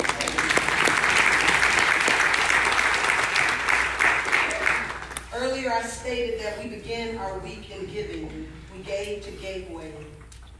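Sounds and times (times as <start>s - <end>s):
audience hand clapping: 0.0s - 5.3s
speech: 5.7s - 10.2s.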